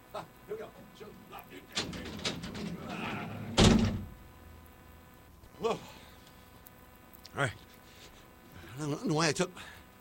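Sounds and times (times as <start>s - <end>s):
faint noise: 0.0s - 9.9s
large heavy door swinging open: 1.8s - 4.2s
speech: 7.4s - 7.6s, 8.9s - 9.8s.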